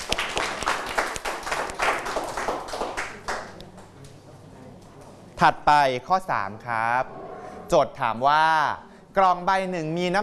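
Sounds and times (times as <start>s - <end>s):
classroom applause for a student: 0.0s - 4.0s
speech: 5.4s - 10.2s.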